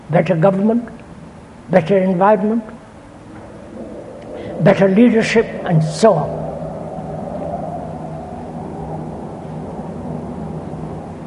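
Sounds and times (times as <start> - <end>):
speech: 0.1 - 1.0, 1.7 - 2.8, 4.6 - 6.4
aeroplanes roaring overhead: 2.7 - 11.2.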